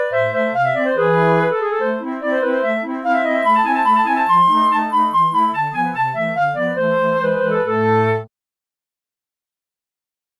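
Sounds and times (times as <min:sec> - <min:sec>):
flute: 0:00.0 - 0:08.3.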